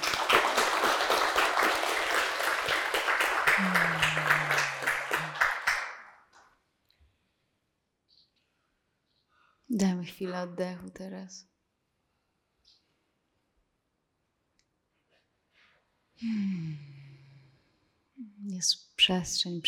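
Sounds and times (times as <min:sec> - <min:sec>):
crowd applause: 0:00.0 - 0:06.2
short vocal sound: 0:03.6 - 0:05.5, 0:16.2 - 0:17.5
speech: 0:09.8 - 0:11.5, 0:18.6 - 0:19.6.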